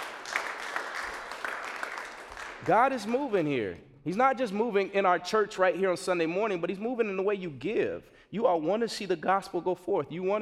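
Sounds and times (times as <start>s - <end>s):
audience applause: 0.0s - 3.3s
speech: 2.6s - 10.4s.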